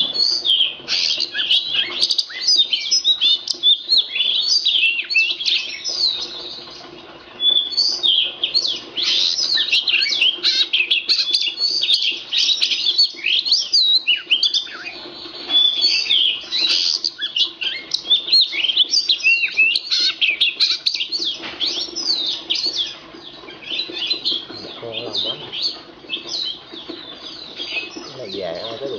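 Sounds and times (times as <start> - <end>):
Oriental magpie-robin singing: 0.0 - 28.9.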